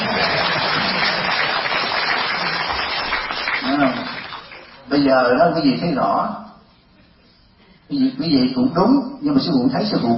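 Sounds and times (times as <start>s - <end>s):
audience clapping at a Vietnamese Buddhist teaching session: 0.0s - 4.9s
speech: 5.1s - 6.5s, 7.9s - 10.1s.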